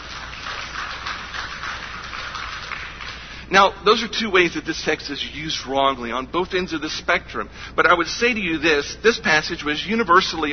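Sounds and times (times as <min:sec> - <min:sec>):
audience clapping: 0:00.0 - 0:03.5
speech: 0:03.5 - 0:10.5.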